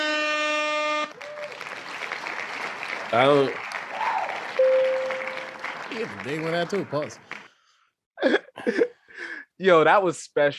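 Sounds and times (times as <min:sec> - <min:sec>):
blaring horn: 0:00.0 - 0:01.2, 0:04.6 - 0:05.6
crowd applause and cheering: 0:01.1 - 0:07.5
speech: 0:03.1 - 0:03.6, 0:06.0 - 0:07.3, 0:09.6 - 0:10.5
wavering whoop: 0:03.9 - 0:04.5.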